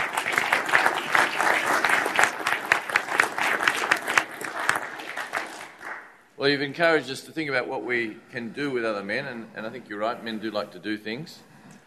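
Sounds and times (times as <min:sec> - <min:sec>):
audience clapping: 0:00.0 - 0:06.3
speech: 0:06.4 - 0:11.5.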